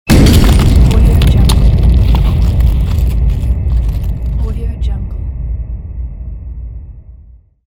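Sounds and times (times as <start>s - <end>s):
bomb exploding: 0.0s - 7.5s.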